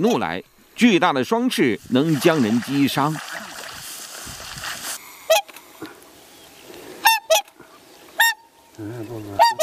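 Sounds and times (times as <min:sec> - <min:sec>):
speech: 0:00.0 - 0:03.3
swans honking: 0:06.8 - 0:09.6.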